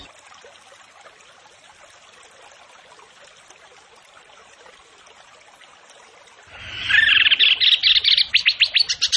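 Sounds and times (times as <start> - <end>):
bird song of rapid high trills: 6.5 - 9.0.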